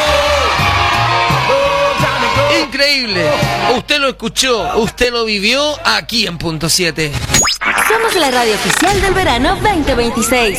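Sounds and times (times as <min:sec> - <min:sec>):
crowd cheering and yelling: 0:00.0 - 0:03.8
speech: 0:02.9 - 0:10.5.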